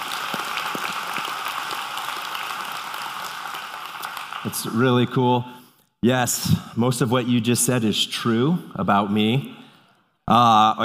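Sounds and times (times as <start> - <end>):
audience round of applause: 0.0 - 5.1
speech: 4.4 - 9.6, 10.3 - 10.8.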